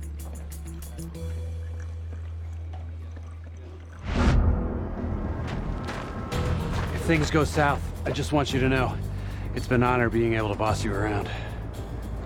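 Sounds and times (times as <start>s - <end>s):
Sumatra coffee poured into a thermos: 0.0s - 4.0s
low even hum: 4.0s - 8.1s
speech: 7.1s - 11.5s.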